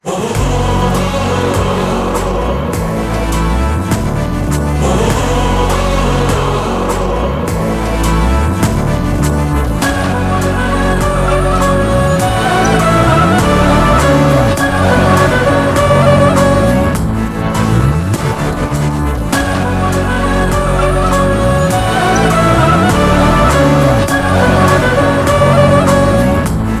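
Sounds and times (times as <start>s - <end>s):
trailer background music: 0.0s - 26.7s.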